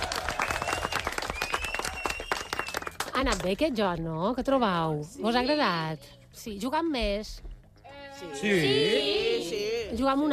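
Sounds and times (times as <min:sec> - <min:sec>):
children applauding: 0:00.0 - 0:03.1
speech: 0:03.2 - 0:07.5, 0:08.2 - 0:10.3.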